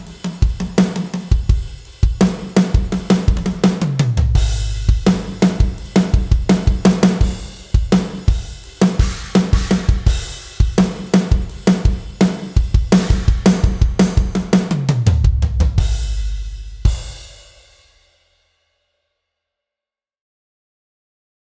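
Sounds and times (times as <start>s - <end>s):
gospel drumming: 0.0s - 16.2s.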